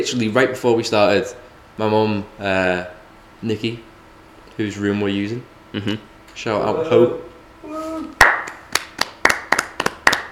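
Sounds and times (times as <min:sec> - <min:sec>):
speech: 0:00.0 - 0:03.9, 0:04.6 - 0:08.2
polite golf-style clapping: 0:08.2 - 0:10.3.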